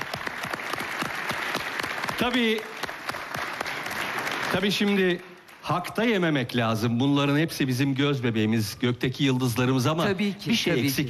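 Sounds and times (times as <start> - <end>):
applause: 0.0 - 6.4
speech: 2.2 - 2.7, 4.5 - 11.0.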